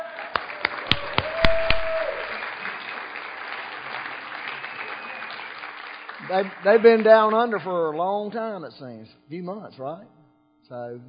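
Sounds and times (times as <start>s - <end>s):
sparse applause welcoming people back: 0.2s - 7.5s
speech: 6.3s - 11.0s.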